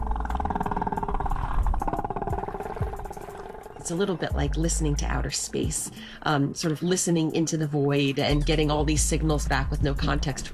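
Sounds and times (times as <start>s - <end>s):
whale calls: 0.0s - 8.3s
speech: 3.9s - 10.5s.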